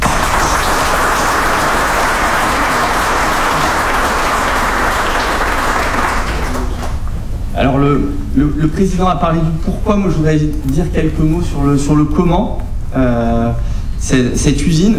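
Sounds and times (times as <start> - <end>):
audience applause: 0.0 - 7.2
speech: 7.8 - 14.9.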